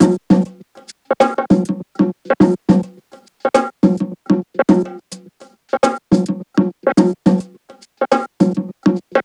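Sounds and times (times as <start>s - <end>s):
percussion groove at 105 bpm: 0.0s - 9.2s.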